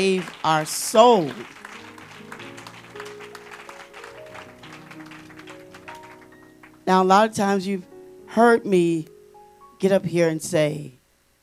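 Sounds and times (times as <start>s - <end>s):
speech: 0.0s - 1.6s, 6.9s - 9.1s, 9.8s - 11.0s
audience applause: 0.0s - 6.8s.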